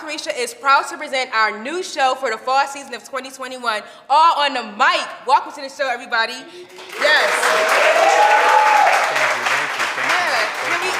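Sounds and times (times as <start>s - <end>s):
speech: 0.1s - 8.5s
audience applause: 6.8s - 10.9s.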